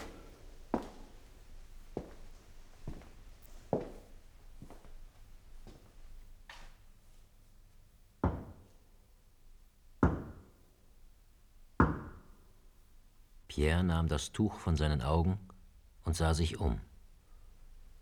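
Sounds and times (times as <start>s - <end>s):
loud knocks on a door: 8.2s - 8.7s, 10.0s - 10.5s, 11.8s - 12.3s
speech: 13.6s - 15.5s, 16.1s - 16.9s.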